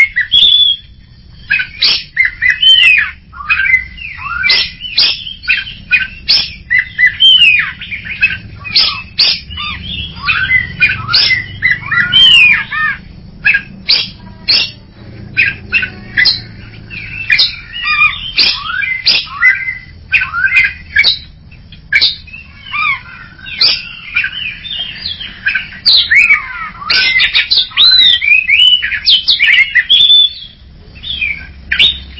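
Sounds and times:
greater green leafbird singing: 0:00.0 - 0:32.1.

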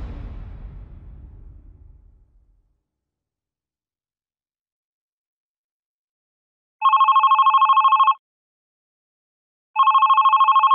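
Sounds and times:
telephone bell ringing: 0:06.8 - 0:08.2, 0:09.8 - 0:10.7.

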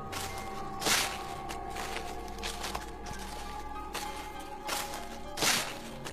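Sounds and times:
footsteps walking outside the wooden bathroom door: 0:00.0 - 0:06.1.

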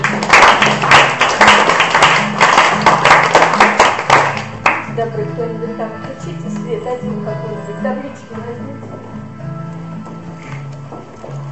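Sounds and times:
group of people clapping: 0:00.0 - 0:04.9.

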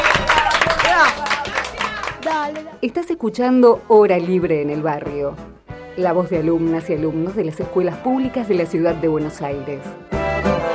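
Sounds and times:
applause: 0:00.0 - 0:02.8
speech: 0:02.4 - 0:10.6.

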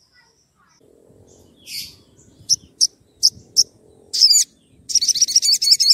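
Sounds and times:
Oriental magpie-robin song: 0:01.4 - 0:05.9.

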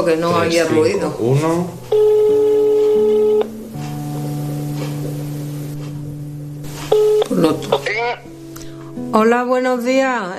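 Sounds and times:
speech: 0:00.0 - 0:02.0, 0:09.1 - 0:10.3
telephone ringing tone: 0:01.8 - 0:04.3, 0:06.8 - 0:08.3
telephone dialing tones as a call is placed to a mobile phone: 0:01.9 - 0:03.6, 0:06.8 - 0:08.2.

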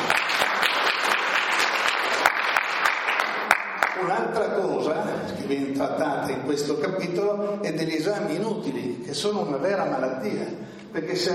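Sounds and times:
audience applause at an Italian book presentation: 0:00.0 - 0:04.2
speech: 0:05.5 - 0:11.3.

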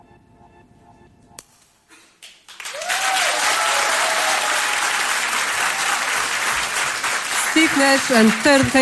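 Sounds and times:
dense crowd applause for the performers: 0:02.2 - 0:08.8
speech: 0:07.7 - 0:08.8.

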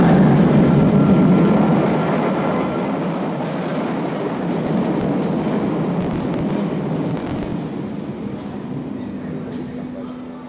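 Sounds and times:
Berlin S-Bahn commuter train pulling into Jannowitzbrücke station: 0:00.0 - 0:09.9
faint high whine of S-Bahn commuter train: 0:06.0 - 0:07.6.

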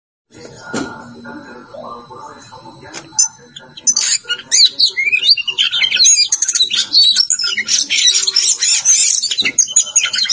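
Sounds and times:
Oriental magpie-robin singing: 0:03.2 - 0:10.3.

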